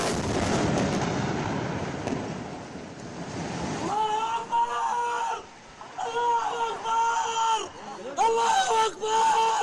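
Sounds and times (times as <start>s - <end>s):
airstrike explosion bringing down a building: 0.0s - 3.9s
people shouting and crying out: 3.8s - 9.6s.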